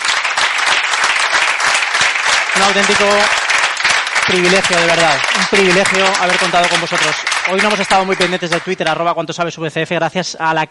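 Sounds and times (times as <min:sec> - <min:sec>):
crowd applause: 0:00.0 - 0:09.0
speech: 0:02.6 - 0:03.4, 0:04.3 - 0:10.6.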